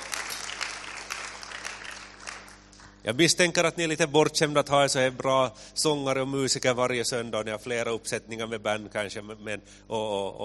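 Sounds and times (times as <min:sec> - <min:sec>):
congregation applause for a worship band at a Sunday church service: 0:00.0 - 0:03.5
speech: 0:03.0 - 0:10.4.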